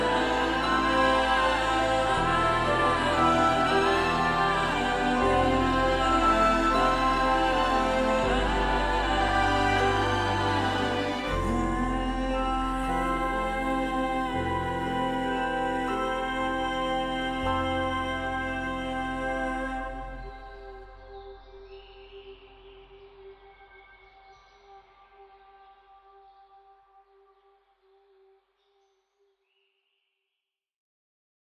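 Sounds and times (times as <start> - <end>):
epic orchestral cover: 0.0 - 20.7.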